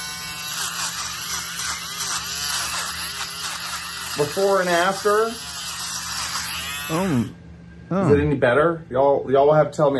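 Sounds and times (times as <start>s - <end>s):
electric fabric shaver removing pills and pet hair from fabric: 0.0s - 7.4s
speech: 4.2s - 5.5s, 6.9s - 9.9s.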